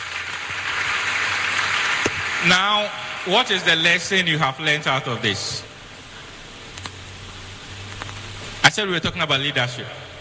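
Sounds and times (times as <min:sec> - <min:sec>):
applause: 0:00.0 - 0:04.2
speech: 0:02.4 - 0:05.7, 0:08.8 - 0:10.1.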